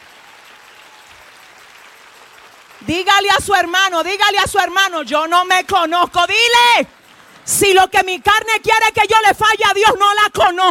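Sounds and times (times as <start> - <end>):
audience applause: 0.0 - 4.4
speech: 2.8 - 10.7.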